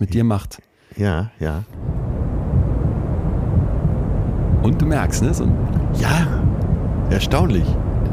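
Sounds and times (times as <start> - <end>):
speech: 0.0 - 1.9, 4.6 - 7.9
faint slow heartbeat: 1.8 - 8.1
white noise: 1.8 - 8.1.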